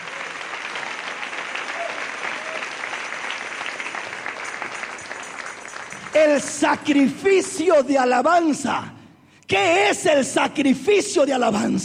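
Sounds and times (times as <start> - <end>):
audience applause: 0.0 - 7.5
speech: 6.2 - 11.8.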